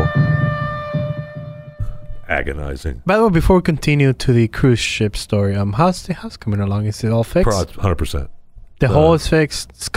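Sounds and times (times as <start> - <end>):
tornado warning siren: 0.0 - 2.2
speech: 2.3 - 9.9.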